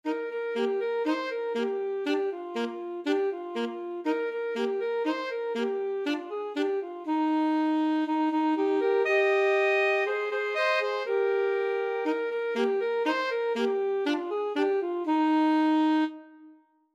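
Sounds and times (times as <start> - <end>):
alto saxophone duet: 0.0 - 16.9.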